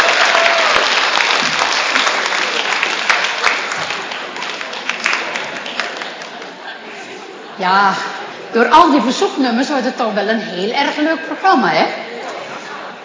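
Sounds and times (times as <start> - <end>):
audience applause: 0.0 - 6.9
speech: 7.6 - 12.0.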